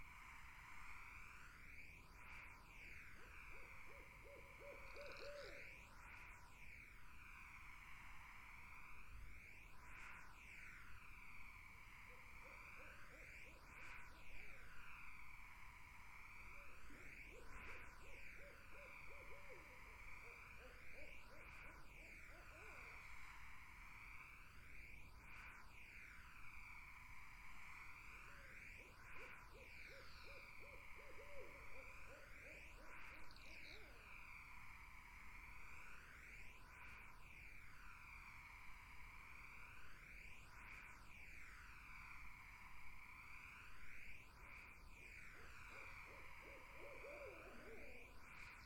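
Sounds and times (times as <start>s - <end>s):
continuous buzzing insect chorus: 0.1s - 48.6s
Barred owl hooting: 3.2s - 5.6s, 16.6s - 23.3s, 29.2s - 34.0s, 45.4s - 48.6s.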